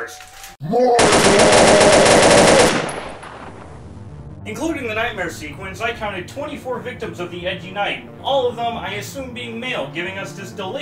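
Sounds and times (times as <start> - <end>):
speech: 0.0 - 1.9, 4.5 - 10.8
Batwing machine guns firing at Doomsday in a Batman film: 1.0 - 3.8.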